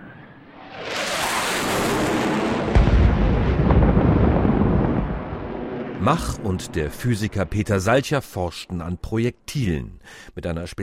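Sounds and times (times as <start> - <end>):
F-18 fighter jet double sonic boom: 0.8 - 7.9
speech: 6.0 - 10.8.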